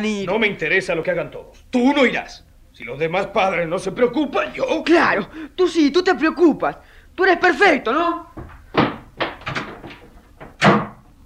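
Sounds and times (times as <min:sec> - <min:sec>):
speech: 0:00.0 - 0:08.6
bedroom door being closed: 0:08.4 - 0:11.2.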